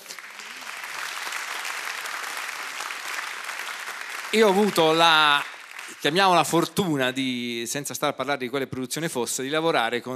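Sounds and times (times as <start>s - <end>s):
applause: 0.0s - 7.2s
speech: 4.3s - 10.1s.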